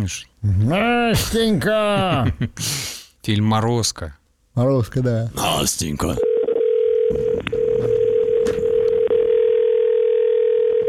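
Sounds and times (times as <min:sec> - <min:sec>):
speech: 0:00.0 - 0:06.3, 0:07.1 - 0:07.6
American long telephone ringing tone: 0:06.2 - 0:10.8.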